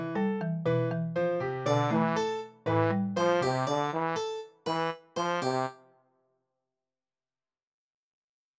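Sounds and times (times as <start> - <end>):
marimba: 0.1 - 5.7.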